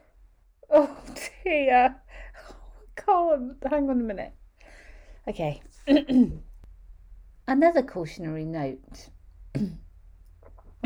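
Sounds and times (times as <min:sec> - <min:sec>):
speech: 0:00.7 - 0:02.1, 0:03.1 - 0:04.4, 0:05.3 - 0:06.5, 0:07.5 - 0:09.8
cough: 0:09.5 - 0:09.9.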